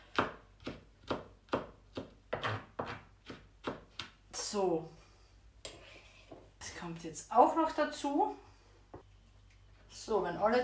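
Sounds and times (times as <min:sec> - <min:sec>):
knife chopping garlic slices: 0:00.0 - 0:04.2
speech: 0:04.5 - 0:05.0, 0:06.8 - 0:08.5, 0:10.1 - 0:10.6.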